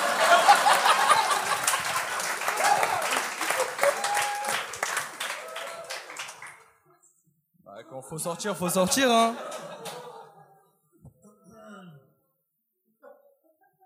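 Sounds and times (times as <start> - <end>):
laughter: 0.0 - 4.3, 8.5 - 10.9, 13.0 - 13.8
audience applause: 0.0 - 6.8
speech: 8.1 - 9.7.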